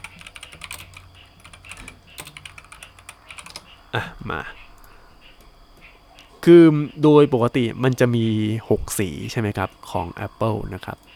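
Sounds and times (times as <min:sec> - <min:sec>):
rapid typing on a computer keyboard: 0:00.0 - 0:03.8
speech: 0:03.9 - 0:04.6, 0:06.4 - 0:11.1.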